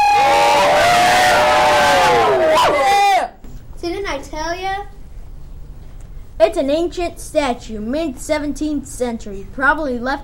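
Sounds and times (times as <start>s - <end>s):
rising whoop: 0.0s - 3.3s
crowd cheering: 0.0s - 3.4s
speech: 6.6s - 10.2s.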